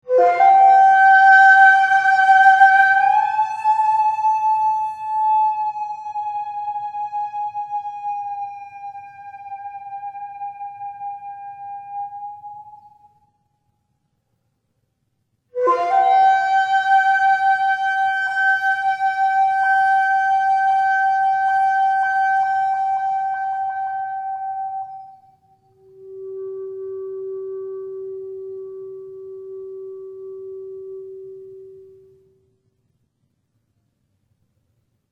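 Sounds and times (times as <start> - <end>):
Japanese shakuhachi flute: 0.0 - 13.4, 15.6 - 32.1.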